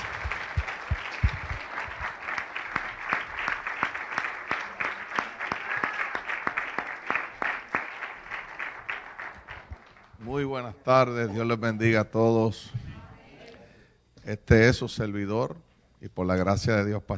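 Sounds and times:
audience applause: 0.0 - 10.2
speech: 10.4 - 12.8, 14.3 - 17.1.

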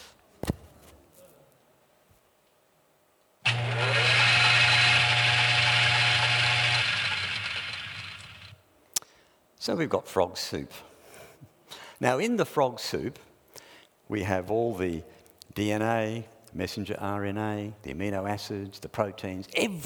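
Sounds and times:
blender running: 3.4 - 8.6
speech: 9.6 - 10.9, 12.0 - 13.3, 14.1 - 19.8.

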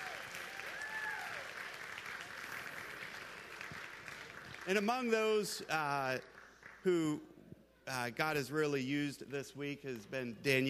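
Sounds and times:
applause: 0.0 - 7.1
speech: 4.7 - 7.3, 7.9 - 10.6.

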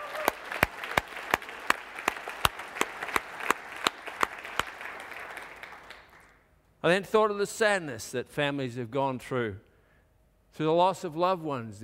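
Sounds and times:
audience applause: 0.0 - 6.4
speech: 6.8 - 9.7, 10.6 - 11.8.

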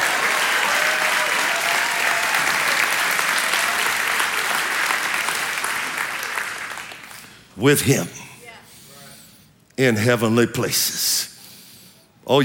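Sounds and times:
audience clapping: 0.0 - 7.5
speech: 7.6 - 8.2, 9.8 - 11.3, 12.3 - 12.4.

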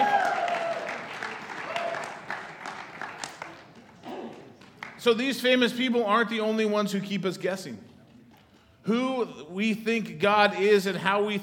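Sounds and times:
cheers and whoops: 0.0 - 2.3
crowd applauding: 0.0 - 5.3
speech: 5.0 - 7.9, 8.8 - 11.4.

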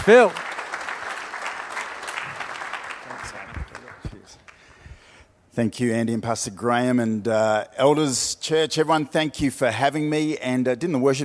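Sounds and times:
speech: 0.0 - 0.4, 5.6 - 11.2
audience applause at a church service: 0.0 - 4.4.

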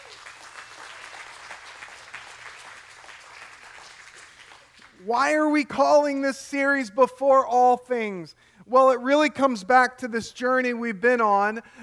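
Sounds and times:
church congregation applause at a morning service: 0.0 - 6.3
speech: 5.0 - 11.8.

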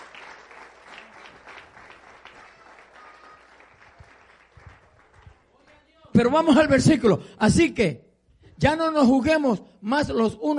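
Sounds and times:
audience applause: 0.0 - 5.5
speech: 6.2 - 8.0, 8.6 - 10.5.

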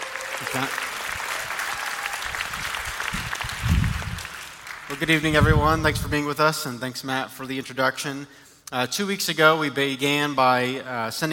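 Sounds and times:
audience applause welcoming a church elder onto the stage: 0.0 - 5.4
speech: 0.4 - 1.0, 4.9 - 11.3.

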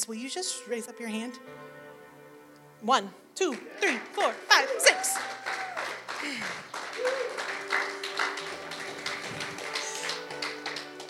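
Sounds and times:
speech: 0.0 - 1.8, 2.8 - 7.5
audience cheering: 3.5 - 11.0
audience clapping: 3.5 - 11.0.

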